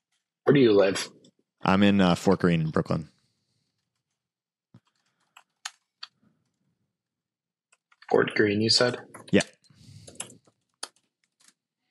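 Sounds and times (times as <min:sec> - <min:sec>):
speech: 0:00.5 - 0:03.1, 0:08.1 - 0:09.6
quiet typing on a computer keyboard: 0:04.8 - 0:05.8, 0:10.1 - 0:11.6.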